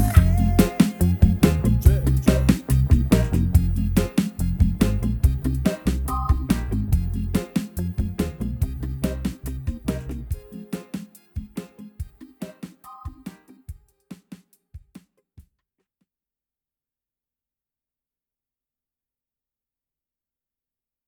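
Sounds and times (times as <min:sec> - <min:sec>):
reggae music: 0:00.0 - 0:14.6.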